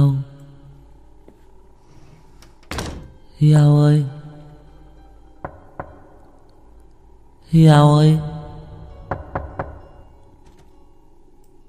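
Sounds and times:
steady low hum: 0.0s - 11.6s
speech: 3.4s - 4.2s, 7.5s - 8.3s
knocking on a door: 5.4s - 6.2s, 8.9s - 10.0s.

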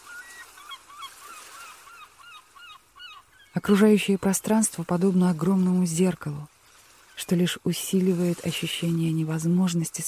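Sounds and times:
gulls and crows calling in the sky over Gampo Monastery: 0.0s - 4.0s
speech: 3.6s - 6.5s, 7.2s - 10.0s.

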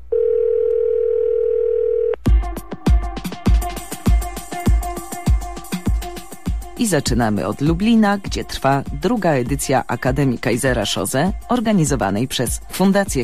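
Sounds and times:
telephone dial tone: 0.1s - 2.2s
loud rhythmic music with sharp percussive hits: 2.2s - 13.2s
speech: 6.8s - 13.2s.

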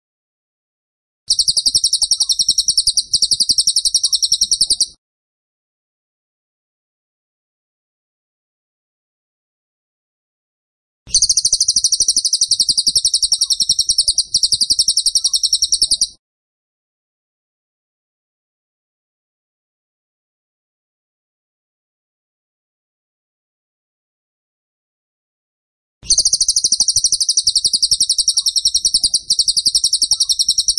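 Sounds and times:
tembakan bird trilling: 1.3s - 5.0s, 11.1s - 16.2s, 26.1s - 30.7s.

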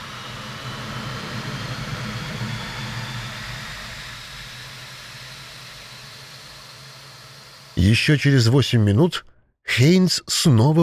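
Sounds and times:
two jet aircraft accelerating down a runway and lifting off: 0.0s - 7.7s
speech: 7.8s - 10.8s.

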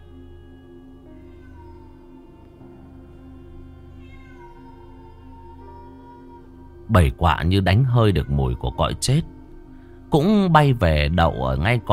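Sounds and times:
feral cat wailing: 1.1s - 9.4s
speech: 6.9s - 9.4s, 10.1s - 11.9s.

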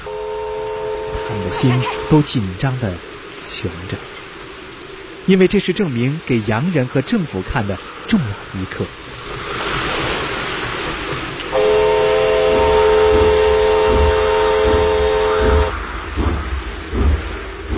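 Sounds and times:
train horn on a flooded track: 0.0s - 2.2s, 11.5s - 15.8s
rushing wave-like rumble of a train on a flooded track: 0.0s - 17.7s
speech: 1.3s - 4.1s, 5.3s - 9.0s.

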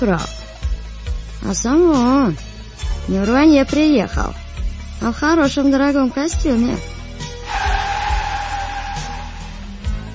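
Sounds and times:
speech: 0.0s - 0.5s, 1.4s - 4.4s, 5.0s - 7.0s
car pulling up and stopping at a dacha: 7.4s - 10.1s
high-pitched squeal of brakes or tires: 7.4s - 10.1s.

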